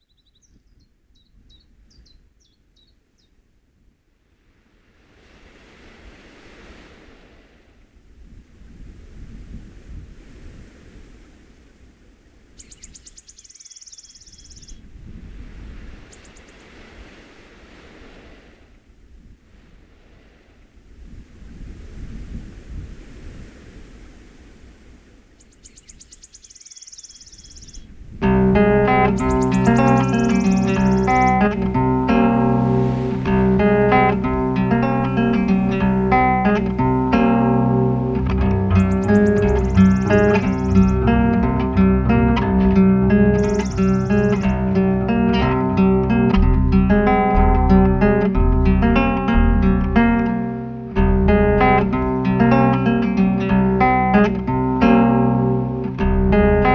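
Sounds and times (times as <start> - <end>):
strange reggae music: 28.2 - 56.7.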